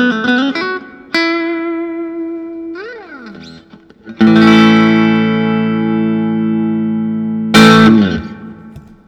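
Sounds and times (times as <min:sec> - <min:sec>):
Fender Telecaster electric guitar: 0:00.0 - 0:09.0.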